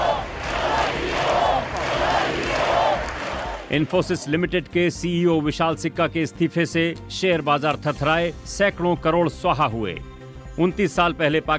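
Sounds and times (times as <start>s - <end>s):
crowd chanting slogans in Barcelona: 0.0s - 4.4s
speech: 3.7s - 11.5s.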